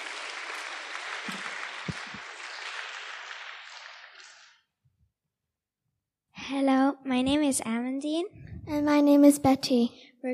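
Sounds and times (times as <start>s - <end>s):
audience applause: 0.0s - 4.6s
speech: 7.2s - 10.3s.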